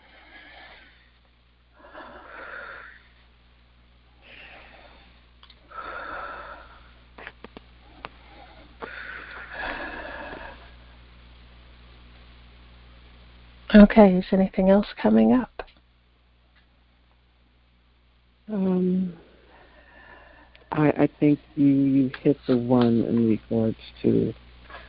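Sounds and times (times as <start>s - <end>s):
slow deep breaths during a guided session: 0.0s - 3.3s, 4.2s - 10.9s, 19.1s - 20.7s
speech: 13.8s - 15.5s, 21.2s - 24.4s.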